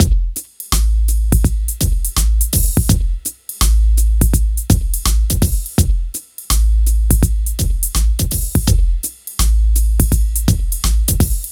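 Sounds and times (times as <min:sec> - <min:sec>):
hip hop and R&B drum loop: 0:00.0 - 0:11.5.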